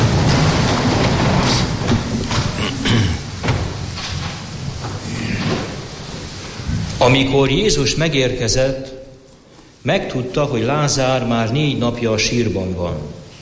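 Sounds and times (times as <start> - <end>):
dull thumps and knocks: 0.0 - 7.0
church congregation rustling and shuffling standing up for the Gospel reading: 0.0 - 13.4
speech: 7.1 - 9.0, 9.8 - 13.2.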